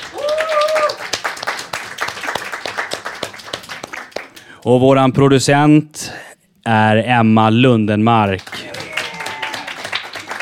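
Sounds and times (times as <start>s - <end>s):
small group applauding: 0.0s - 4.6s, 8.3s - 10.4s
speech: 4.6s - 8.5s.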